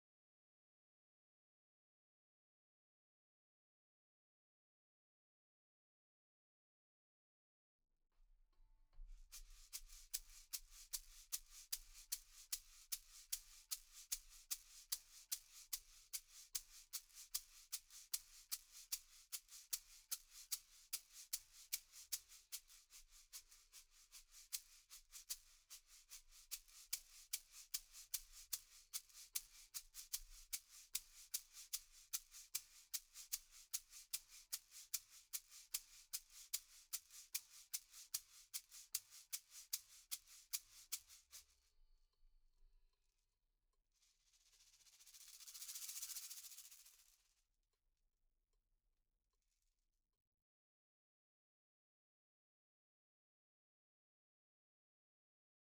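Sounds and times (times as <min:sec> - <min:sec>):
shaker: 0:08.9 - 0:41.8, 0:43.9 - 0:47.4.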